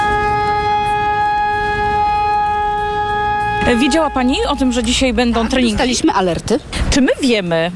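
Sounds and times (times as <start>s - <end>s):
civil defense alarm siren wailing: 0.0s - 6.2s
speech: 3.7s - 7.7s.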